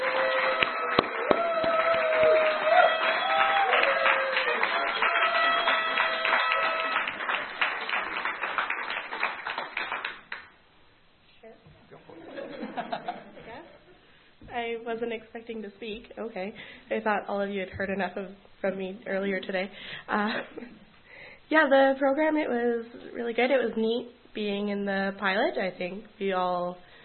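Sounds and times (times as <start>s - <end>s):
crowd applauding: 0.0s - 10.5s
laughter: 12.1s - 13.8s
speech: 15.0s - 20.8s, 21.5s - 26.9s.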